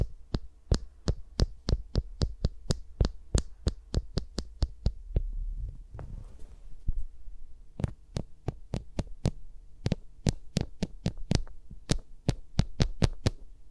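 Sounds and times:
fingers tapping and brushing around microphones: 0.0 - 6.1, 7.8 - 13.4
soft rustling sweep: 5.4 - 7.4.

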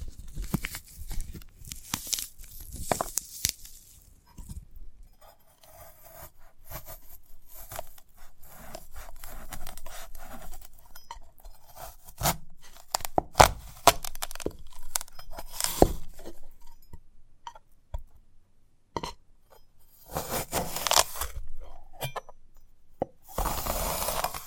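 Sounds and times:
sprouted coconut scraping and tearing: 0.0 - 4.1, 5.3 - 16.6, 20.0 - 21.9, 23.3 - 24.4.

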